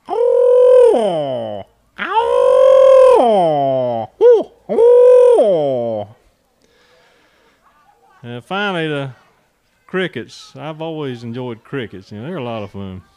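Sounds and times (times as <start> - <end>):
screech owl giving loud harmonic calls: 0.0 - 6.0
speech: 8.4 - 9.2, 9.9 - 13.1.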